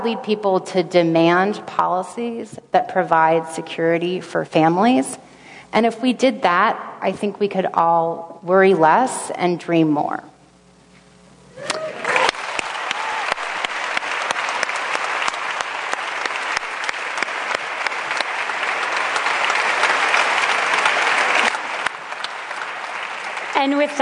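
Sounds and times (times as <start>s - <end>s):
speech: 0.0s - 10.3s, 23.6s - 24.0s
audience applause: 11.6s - 24.0s.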